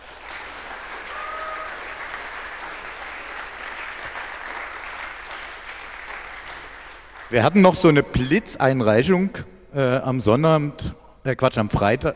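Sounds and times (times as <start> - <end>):
audience applause: 0.0 - 7.4
speech: 7.3 - 12.1.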